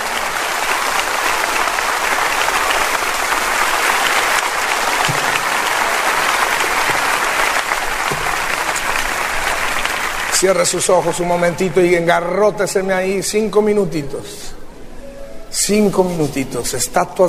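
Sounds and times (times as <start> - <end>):
audience applause: 0.0 - 11.9
speech: 10.4 - 14.6, 15.6 - 17.2.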